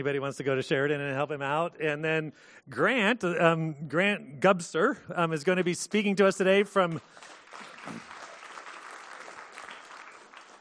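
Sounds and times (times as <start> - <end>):
speech: 0.0 - 8.1
roomful of people applauding: 7.0 - 10.5.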